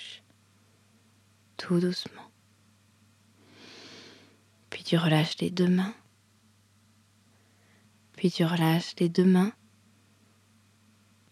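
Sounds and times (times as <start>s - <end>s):
low steady hum: 0.0s - 11.2s
speech: 1.6s - 2.3s, 4.9s - 6.0s, 8.2s - 9.6s
slow exhale through the right nostril in meditation breathing: 3.4s - 4.4s, 7.3s - 7.9s.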